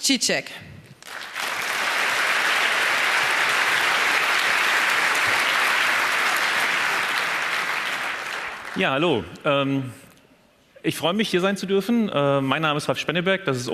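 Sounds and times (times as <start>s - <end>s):
speech: 0.0s - 0.7s, 8.8s - 10.0s, 10.8s - 13.7s
audience applause welcoming speakers: 1.0s - 9.3s.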